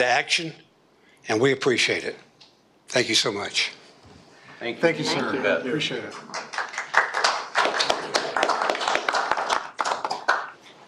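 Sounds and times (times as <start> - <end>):
speech: 0.0 - 0.6, 1.3 - 2.3, 2.9 - 3.8, 4.6 - 6.5
audience clapping: 6.2 - 10.6.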